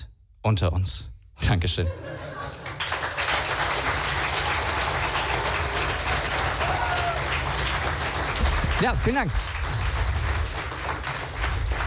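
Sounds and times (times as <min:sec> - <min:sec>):
speech: 0:00.4 - 0:02.3, 0:08.8 - 0:09.6
laughter: 0:01.8 - 0:03.2
audience applause: 0:02.5 - 0:11.8.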